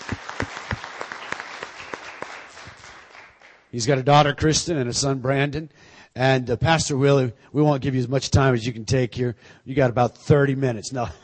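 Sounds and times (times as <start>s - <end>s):
audience applause welcoming a guest: 0.0s - 3.6s
speech: 3.7s - 11.2s.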